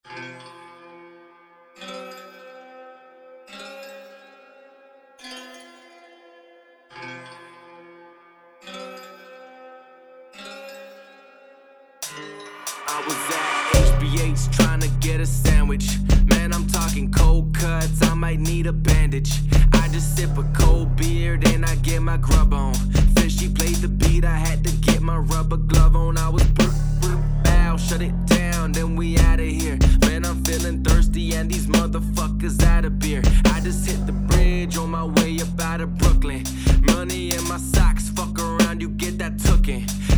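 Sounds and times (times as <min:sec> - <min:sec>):
digital drum circle: 0:12.0 - 0:40.1.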